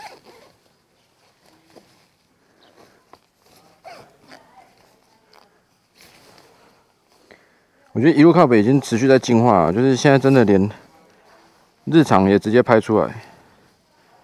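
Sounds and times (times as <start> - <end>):
jacket zipper being unzipped: 0.0 - 0.6, 3.8 - 4.5
speech: 8.0 - 10.8, 11.9 - 13.3.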